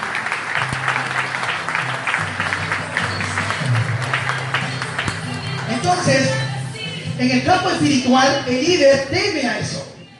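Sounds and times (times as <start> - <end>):
audience applause: 0.0 - 6.0
speech: 6.0 - 6.4, 7.2 - 9.8.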